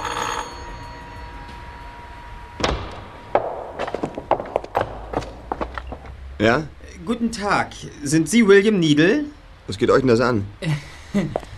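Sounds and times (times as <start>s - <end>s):
doorbell ringing: 0.0s - 2.2s
door clunks and knocks: 2.6s - 6.1s
speech: 6.4s - 11.4s.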